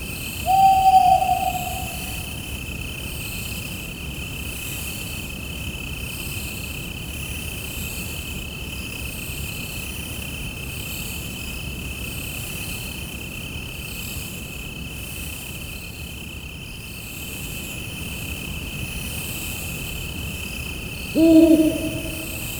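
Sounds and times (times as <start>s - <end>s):
crickets chirping: 0.4s - 2.6s, 21.2s - 22.5s.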